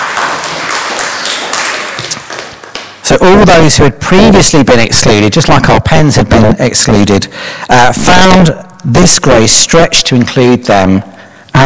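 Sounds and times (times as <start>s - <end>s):
sermon audience applauding: 0.0s - 3.0s
speech: 3.1s - 11.6s.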